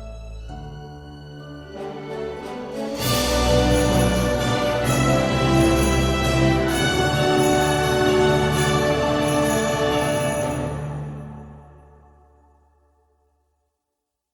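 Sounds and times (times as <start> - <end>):
bagpipe: 1.4 - 11.9.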